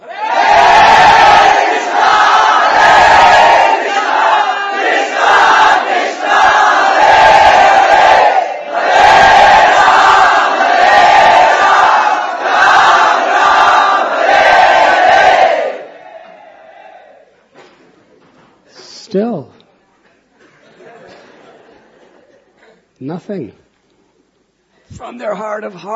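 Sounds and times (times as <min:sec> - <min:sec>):
crowd chanting in unison: 0:00.0 - 0:17.2
laughter: 0:20.1 - 0:22.9
speech: 0:23.2 - 0:23.6, 0:25.0 - 0:25.9.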